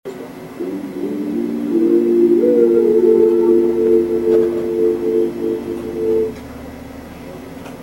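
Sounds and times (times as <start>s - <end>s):
voices harmonizing: 0.6s - 6.4s.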